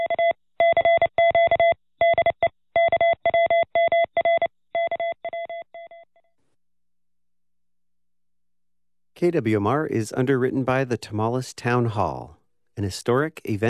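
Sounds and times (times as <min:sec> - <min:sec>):
Morse code beeps: 0:00.0 - 0:06.1
speech: 0:09.2 - 0:13.6.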